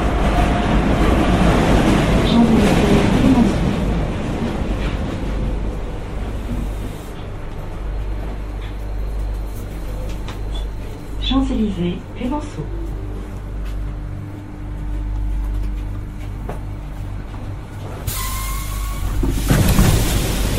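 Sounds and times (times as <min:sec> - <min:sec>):
Paris Métro train low rumble: 0:00.0 - 0:20.5
voices: 0:02.2 - 0:03.8, 0:11.2 - 0:13.4.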